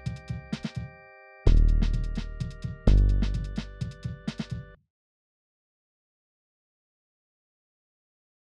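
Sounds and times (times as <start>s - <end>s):
music track at 128 BPM: 0.0s - 4.8s.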